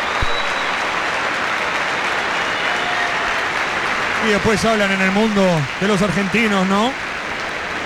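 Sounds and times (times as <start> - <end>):
stadium crowd ovation applause and cheering: 0.0 - 7.8
speech: 4.2 - 7.0.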